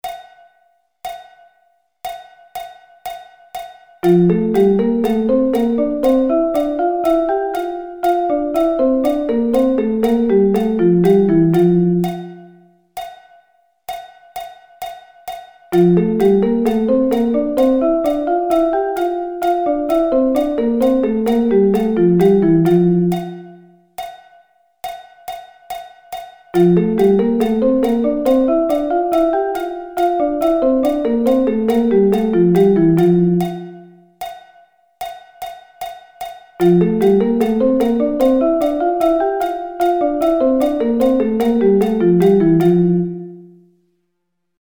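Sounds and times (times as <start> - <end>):
F thirds: 4.0 - 12.6, 15.8 - 23.6, 26.6 - 33.9, 36.6 - 43.4.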